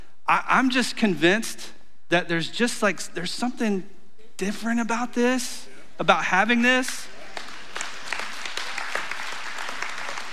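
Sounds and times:
speech: 0.3s - 7.1s
audience clapping: 6.8s - 10.3s.

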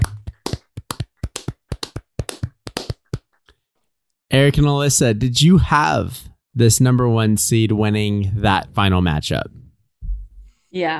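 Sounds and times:
small group clapping: 0.0s - 3.4s
speech: 4.4s - 9.6s, 10.7s - 10.9s.

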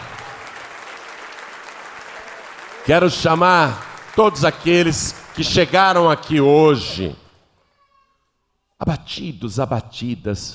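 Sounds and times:
audience applause: 0.0s - 7.2s
speech: 2.8s - 7.2s, 8.8s - 10.5s.

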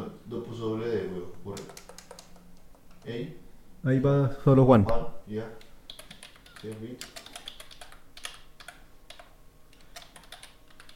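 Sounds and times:
typing a name on a computer keyboard: 1.5s - 3.1s, 5.6s - 10.9s
speech: 3.1s - 5.6s, 6.6s - 7.2s.

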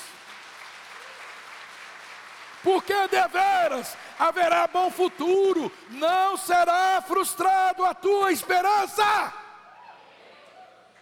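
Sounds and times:
audience applause: 0.0s - 6.4s
speech: 2.6s - 9.4s.

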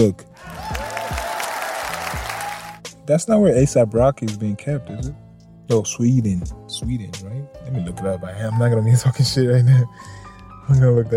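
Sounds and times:
speech: 0.0s - 0.3s, 3.1s - 11.1s
applause: 0.4s - 2.8s.

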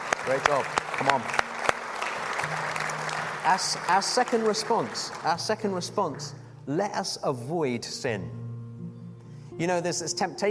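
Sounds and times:
audience applause: 0.0s - 6.3s
speech: 0.2s - 1.4s, 3.4s - 8.4s, 9.6s - 10.4s.

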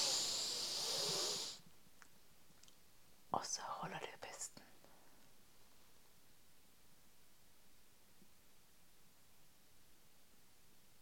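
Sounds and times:
deep inhale through the nose: 0.0s - 1.7s
speech: 3.3s - 4.7s.

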